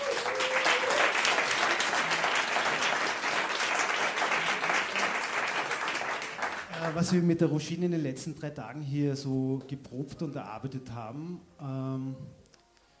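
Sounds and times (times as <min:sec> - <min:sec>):
audience applause: 0:00.0 - 0:07.2
speech: 0:07.0 - 0:12.4.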